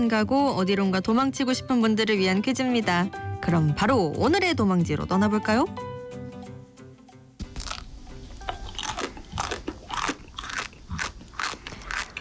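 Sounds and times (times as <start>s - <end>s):
speech: 0.0s - 5.9s
eating Dubai chocolate: 7.5s - 12.1s.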